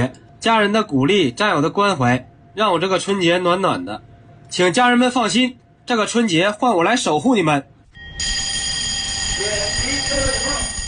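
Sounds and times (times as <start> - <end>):
speech: 0.0 - 8.4
urgent alarm bell ringing: 7.9 - 10.8.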